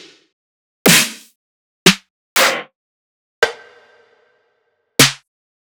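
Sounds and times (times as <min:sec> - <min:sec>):
snare drum one-shot: 0:00.9 - 0:01.3, 0:01.9 - 0:02.7, 0:05.0 - 0:05.2.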